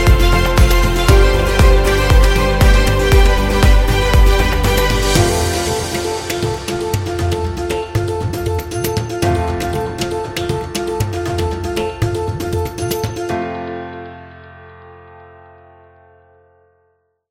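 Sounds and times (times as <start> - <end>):
upbeat India travel music: 0.0 - 13.8.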